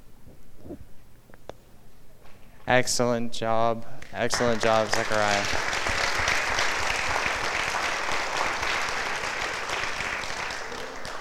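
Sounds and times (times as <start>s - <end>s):
speech: 2.7s - 5.8s
audience applause: 4.2s - 11.1s.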